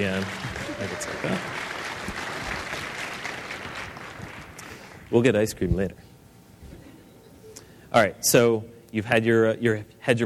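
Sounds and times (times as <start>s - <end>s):
speech: 0.0s - 2.3s, 5.1s - 6.0s, 7.9s - 10.2s
audience applause: 0.0s - 4.6s.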